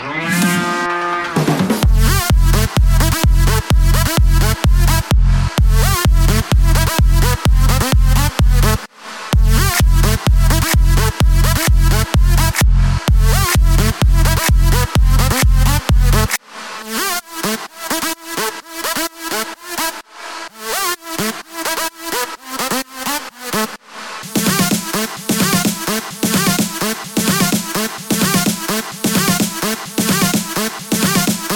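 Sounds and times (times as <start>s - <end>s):
disco music: 0.0s - 31.5s.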